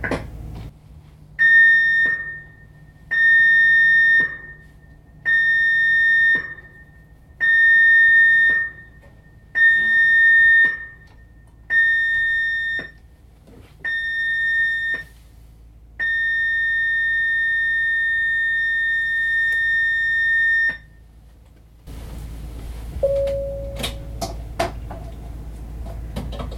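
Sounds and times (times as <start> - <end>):
ship's general emergency alarm signal: 1.4 - 13.0, 13.9 - 15.1, 16.0 - 20.9.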